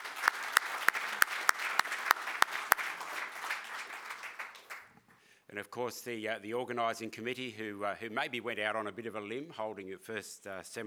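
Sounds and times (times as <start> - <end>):
audience applause: 0.0 - 5.0
speech: 5.6 - 10.8.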